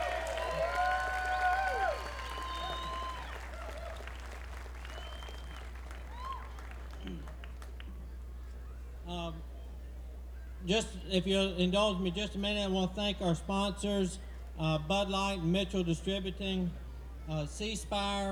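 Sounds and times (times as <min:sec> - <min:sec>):
whistling: 0:00.0 - 0:07.6
audience applause: 0:00.0 - 0:07.9
speech: 0:10.7 - 0:18.2.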